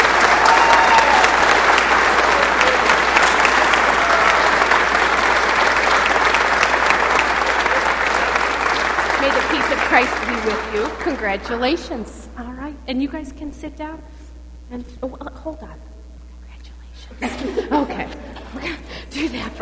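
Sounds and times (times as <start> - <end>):
audience clapping hands: 0.0 - 12.1
speech: 10.7 - 15.9, 17.1 - 19.6
laughter: 17.2 - 19.6.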